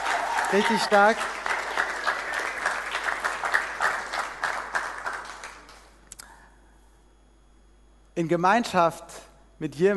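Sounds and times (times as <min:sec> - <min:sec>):
audience applause: 0:00.0 - 0:05.9
speech: 0:00.5 - 0:01.4, 0:08.2 - 0:09.9.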